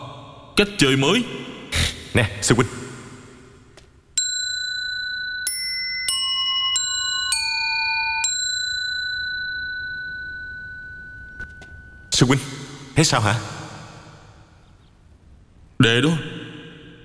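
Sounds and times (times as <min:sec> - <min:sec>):
speech: 0:00.6 - 0:01.5, 0:02.1 - 0:02.8, 0:12.2 - 0:13.6, 0:15.8 - 0:16.3
bell chiming in differing pitches: 0:04.2 - 0:14.6.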